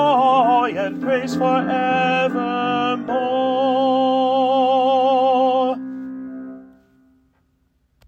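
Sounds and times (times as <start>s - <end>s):
tenor singing: 0.0s - 5.9s.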